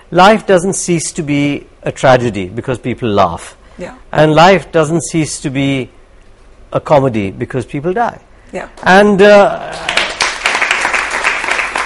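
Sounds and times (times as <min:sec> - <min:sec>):
speech: 0:00.1 - 0:06.0, 0:06.7 - 0:10.0
audience applause: 0:09.6 - 0:11.8.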